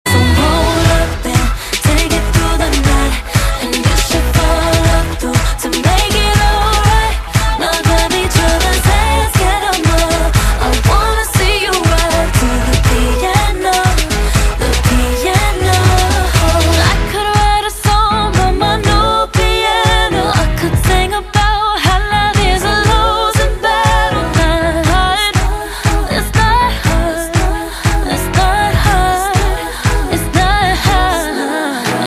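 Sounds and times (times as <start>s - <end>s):
piano: 0.1s - 32.0s.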